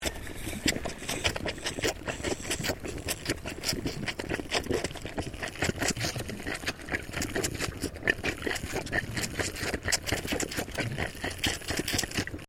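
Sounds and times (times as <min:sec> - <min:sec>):
Boer goat kid bottle feeding: 0:00.0 - 0:12.4.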